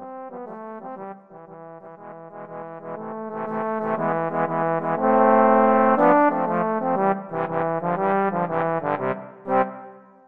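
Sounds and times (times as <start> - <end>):
trombone trio: 2.8 - 9.6.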